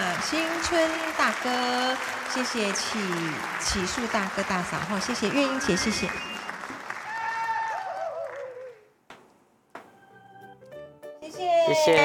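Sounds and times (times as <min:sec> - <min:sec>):
audience applause: 0:00.0 - 0:08.8
speech: 0:00.3 - 0:06.4, 0:11.8 - 0:12.0.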